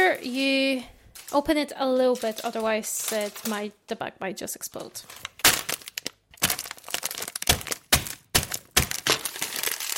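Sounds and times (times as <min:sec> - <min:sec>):
speech: 0:00.2 - 0:05.3
rolling pin smashing chocolate mini eggs: 0:06.4 - 0:09.9.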